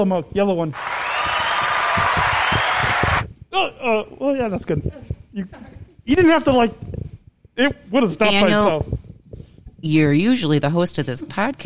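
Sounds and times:
speech: 0.0s - 1.1s, 3.6s - 7.0s, 7.6s - 9.0s, 9.8s - 11.6s
audience applause greeting guests joining a roundtable conversation: 0.7s - 3.3s.

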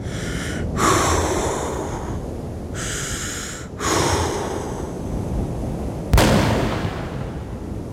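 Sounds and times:
steady rushing, breathy background: 0.0s - 5.4s
rifle shot in an audio drama: 6.2s - 7.7s.

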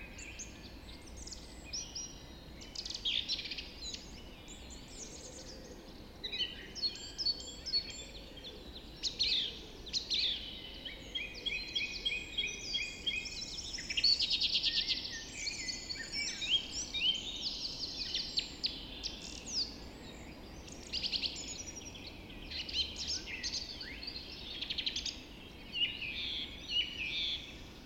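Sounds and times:
birds dawn chorus: 0.0s - 27.8s.

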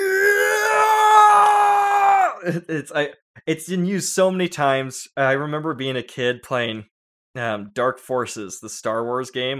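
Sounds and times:
voice imitating a long overused stock movie scream: 0.0s - 2.6s
speech: 2.4s - 9.5s.

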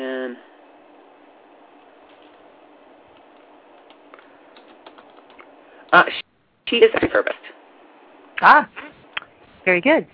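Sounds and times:
speech: 0.0s - 0.5s, 5.9s - 7.5s, 8.4s - 8.8s, 9.6s - 10.1s
typing on a computer keyboard: 3.8s - 5.4s.

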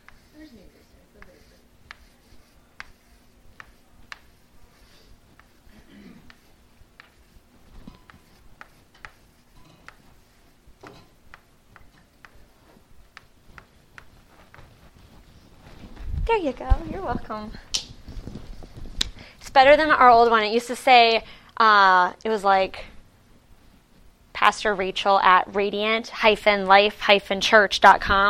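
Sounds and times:
pen or marker writing on a board: 0.0s - 14.6s
speech: 16.3s - 17.7s, 19.6s - 22.9s, 24.4s - 28.2s.

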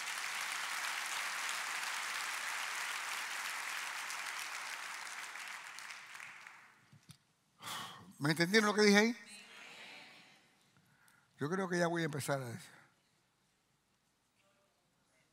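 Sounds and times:
audience applause: 0.0s - 6.8s
speech: 8.2s - 9.3s, 11.4s - 12.8s.

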